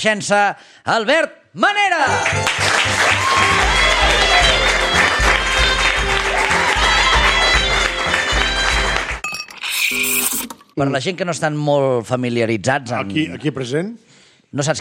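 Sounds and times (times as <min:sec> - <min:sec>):
speech: 0:00.0 - 0:04.6, 0:10.8 - 0:14.7
audience applause: 0:02.1 - 0:09.2.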